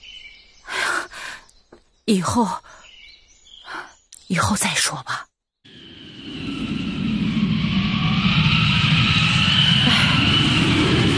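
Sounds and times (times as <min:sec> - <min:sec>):
speech: 0:02.1 - 0:02.7, 0:04.3 - 0:05.2
strong wind blowing: 0:05.7 - 0:11.1.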